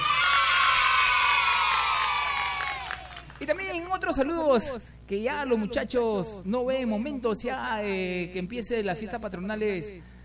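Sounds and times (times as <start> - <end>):
applause: 0.7 - 3.7
speech: 4.0 - 10.2.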